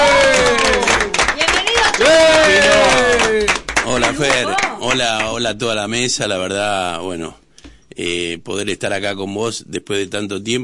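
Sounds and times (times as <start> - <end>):
raised voices and cheers: 0.0 - 1.2, 1.8 - 3.5
studio applause: 0.0 - 5.5
speech: 4.2 - 7.4, 8.0 - 10.6.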